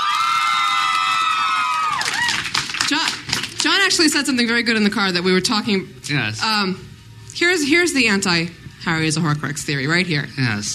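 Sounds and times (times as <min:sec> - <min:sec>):
audience cheering: 0:00.0 - 0:02.8
speech: 0:03.8 - 0:10.7.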